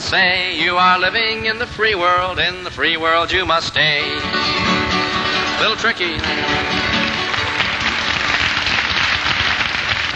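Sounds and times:
speech: 0:00.1 - 0:04.7, 0:05.6 - 0:06.8
audience applause: 0:05.1 - 0:10.1.

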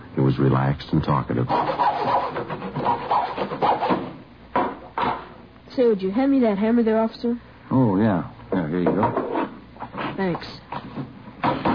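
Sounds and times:
speech: 0:00.3 - 0:02.2, 0:05.8 - 0:09.2, 0:10.2 - 0:10.6
hacksaw sawing through plywood: 0:01.5 - 0:04.1.

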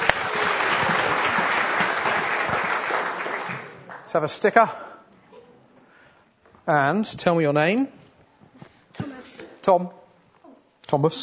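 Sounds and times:
audience applause: 0:00.0 - 0:04.1
speech: 0:04.1 - 0:04.9, 0:06.7 - 0:08.0, 0:09.6 - 0:10.0, 0:10.9 - 0:11.2.

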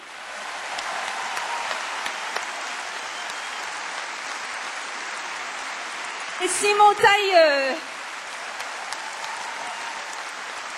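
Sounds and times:
audience applause for a musician: 0:00.0 - 0:10.7
speech: 0:06.4 - 0:07.9.

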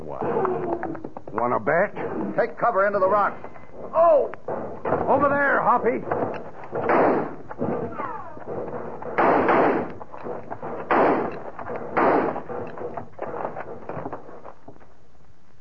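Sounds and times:
speech: 0:01.4 - 0:07.3
gunfire volley in a canyon: 0:06.7 - 0:08.2, 0:09.0 - 0:10.0, 0:10.6 - 0:12.6.

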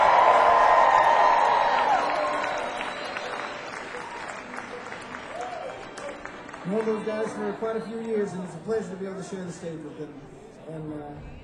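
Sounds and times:
audience applause: 0:00.0 - 0:08.4
speech: 0:06.7 - 0:11.4.

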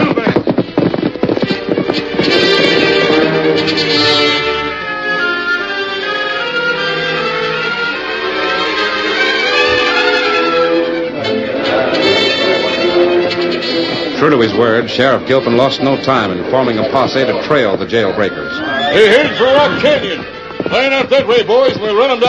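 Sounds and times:
horse hooves clip-clopping: 0:00.0 - 0:22.2
orchestral music: 0:01.4 - 0:22.2
speech: 0:14.6 - 0:22.2.

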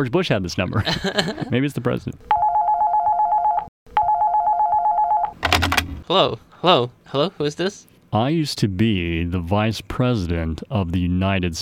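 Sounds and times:
speech: 0:00.0 - 0:02.4, 0:06.1 - 0:11.6
laughter: 0:00.7 - 0:01.6
telephone ringing with electronic trills: 0:02.3 - 0:06.0
clattering burst: 0:05.4 - 0:06.0.

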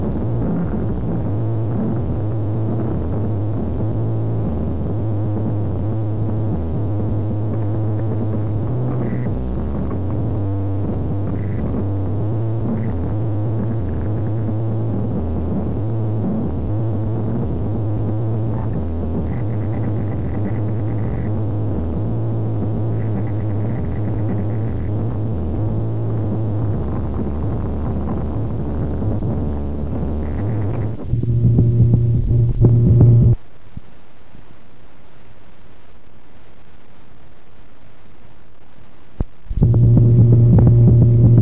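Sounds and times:
weird noises: 0:00.0 - 0:33.4, 0:39.5 - 0:41.3.

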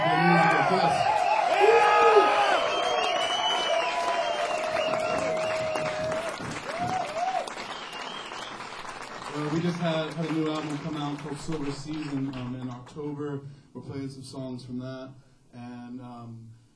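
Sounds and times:
crowd applause and cheering for a rock and roll band: 0:00.0 - 0:12.8
speech: 0:10.7 - 0:15.3, 0:15.9 - 0:16.6.

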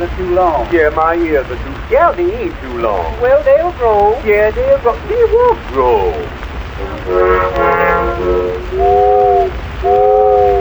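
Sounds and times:
speech: 0:00.0 - 0:10.4
steamboat whistle: 0:04.4 - 0:10.5.

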